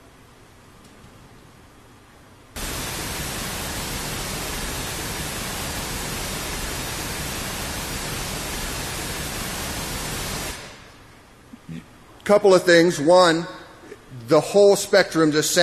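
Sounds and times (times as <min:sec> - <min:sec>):
waterfall sound effect white noise: 0:00.0 - 0:15.6
speech: 0:12.3 - 0:13.6, 0:14.3 - 0:15.6.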